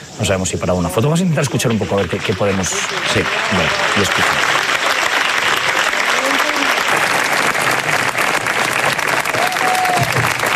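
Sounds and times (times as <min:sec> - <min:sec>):
faint voices murmuring: 0:00.0 - 0:08.2
speech: 0:00.2 - 0:04.6
crowd applause: 0:01.0 - 0:10.5.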